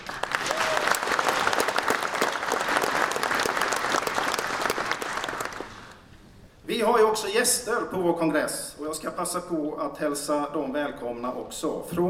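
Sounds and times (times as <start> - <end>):
audience applause: 0.0 - 6.0
speech: 6.8 - 12.0.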